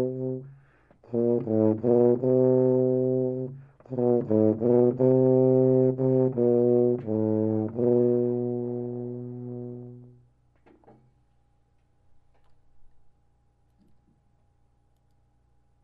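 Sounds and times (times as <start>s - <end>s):
tuba: 0.0s - 10.3s.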